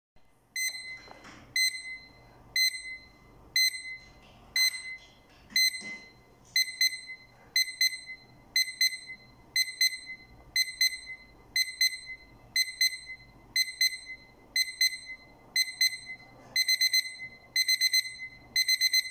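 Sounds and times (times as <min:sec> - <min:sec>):
alarm: 0:00.6 - 0:19.0.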